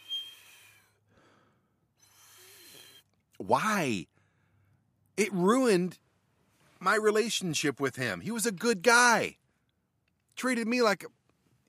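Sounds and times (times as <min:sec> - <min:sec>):
voice imitating a whistling breath through the nose: 0:00.0 - 0:03.1
speech: 0:03.4 - 0:04.1, 0:05.2 - 0:06.0, 0:06.8 - 0:09.4, 0:10.4 - 0:11.6.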